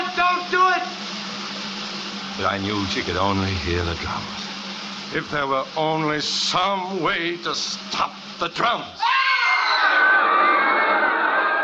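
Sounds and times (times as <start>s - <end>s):
speech: 2.4s - 4.4s, 5.1s - 9.2s
terrified roar of a huge crowd: 9.0s - 11.6s.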